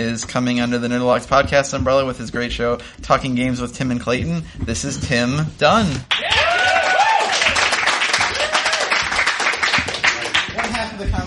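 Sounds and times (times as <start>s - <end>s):
speech: 0.0s - 6.3s
audience applause: 6.1s - 11.0s.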